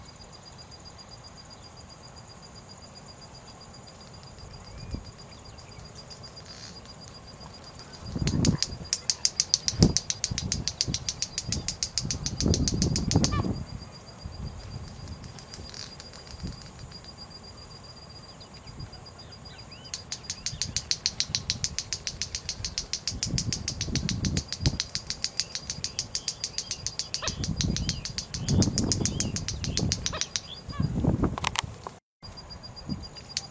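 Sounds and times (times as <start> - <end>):
white-bellied seedeater song: 7.8 - 13.6, 14.9 - 17.1, 19.8 - 30.8, 33.1 - 33.4.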